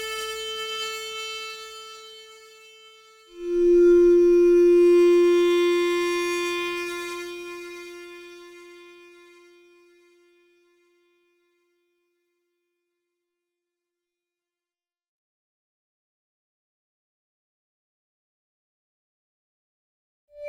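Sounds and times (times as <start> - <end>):
ambient music: 3.4 - 7.6.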